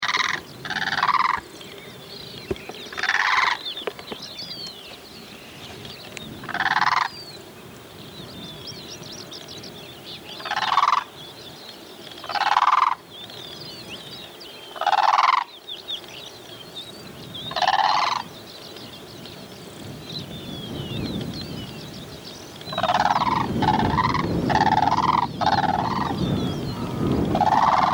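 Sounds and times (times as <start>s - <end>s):
bird giving rattling gobbles: 0.0s - 1.6s, 2.5s - 4.1s, 6.4s - 7.2s, 10.4s - 11.2s, 12.1s - 13.0s, 14.7s - 15.5s, 17.5s - 18.3s, 22.7s - 27.9s.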